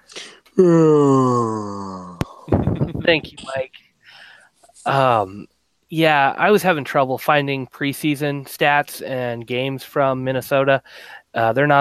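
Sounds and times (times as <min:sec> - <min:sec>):
person yawning: 0:00.1 - 0:02.5
speech: 0:00.6 - 0:01.3, 0:03.1 - 0:03.8, 0:04.8 - 0:11.8.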